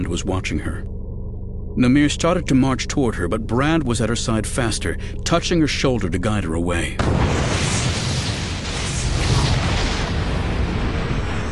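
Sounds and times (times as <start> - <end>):
speech: 0.0 - 0.9, 1.8 - 7.6
compound explosion like a thunderclap: 7.0 - 11.5.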